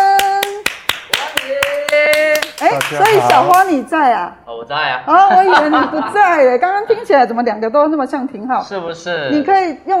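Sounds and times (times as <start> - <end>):
hand claps: 0.0 - 3.8
speech: 2.9 - 9.9
laughter: 5.2 - 6.5.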